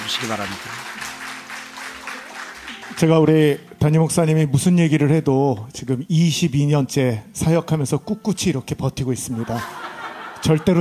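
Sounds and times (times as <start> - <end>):
warm audience applause: 0.0 - 3.2
speech: 0.2 - 1.1, 2.9 - 10.7
laughter: 9.3 - 10.7.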